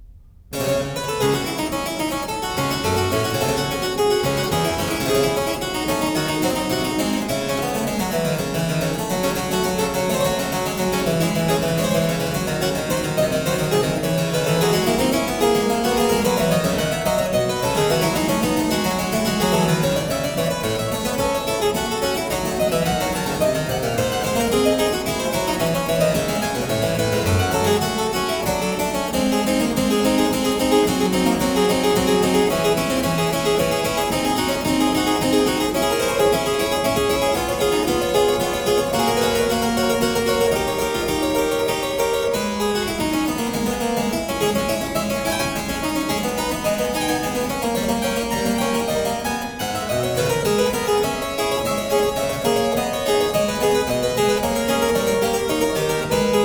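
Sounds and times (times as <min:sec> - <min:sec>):
prelude and fugue on keyboard: 0:00.5 - 0:56.4.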